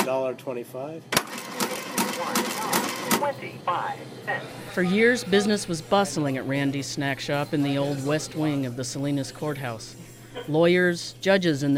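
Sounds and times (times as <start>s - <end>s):
speech: 0.1s - 1.4s, 2.2s - 11.7s
talking cash register mechanical clicks and clacks at a courthouse snack shop: 1.2s - 3.3s.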